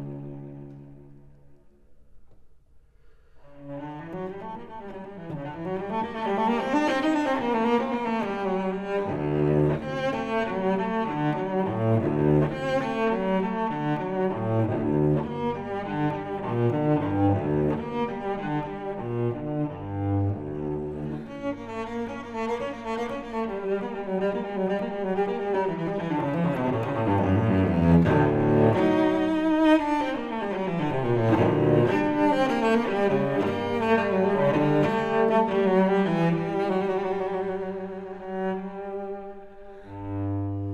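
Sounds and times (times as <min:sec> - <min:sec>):
solo cello suite: 0:00.0 - 0:40.7.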